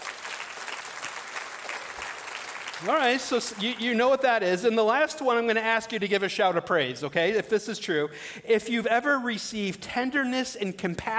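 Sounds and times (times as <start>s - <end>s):
church congregation clapping hands: 0.0s - 4.7s
speech: 2.8s - 11.1s.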